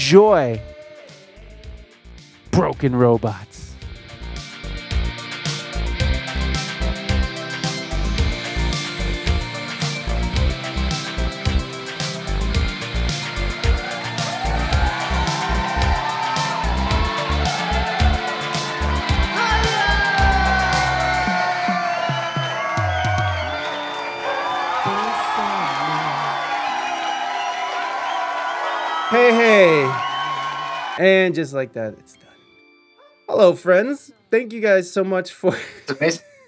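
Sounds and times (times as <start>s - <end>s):
speech: 0.1s - 0.7s, 2.6s - 3.6s, 31.0s - 32.2s, 33.3s - 36.3s
heavy rhythmic thumps: 3.8s - 23.6s
crowd cheering and whooping: 5.2s - 31.0s
shrill whistles: 9.6s - 31.0s
laughter: 35.5s - 36.4s.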